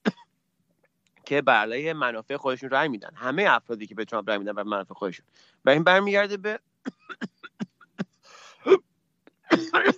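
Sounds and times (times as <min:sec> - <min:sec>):
fit of dry coughing: 0:00.0 - 0:00.3, 0:06.8 - 0:08.8, 0:09.4 - 0:09.9
speech: 0:01.3 - 0:07.3
raspy breath: 0:05.3 - 0:05.6, 0:08.2 - 0:08.7.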